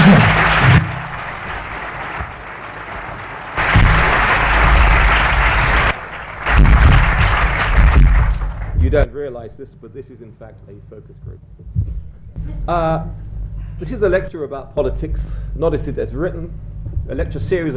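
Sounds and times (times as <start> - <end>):
audience clapping: 0.0 - 9.1
speech: 9.3 - 17.7.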